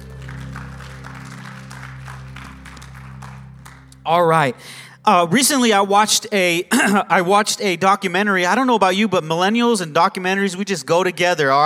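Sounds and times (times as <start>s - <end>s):
low tonal hum: 0.0s - 4.6s
audience clapping: 0.0s - 4.8s
speech: 4.0s - 11.6s.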